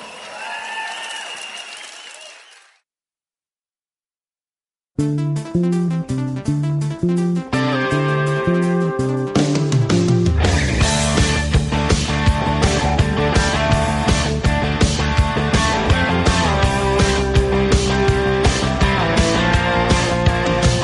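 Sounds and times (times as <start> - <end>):
audience applause: 0.0 - 2.8
cheering: 0.0 - 2.8
loud rhythmic music with steady pulsing chords: 5.0 - 20.8.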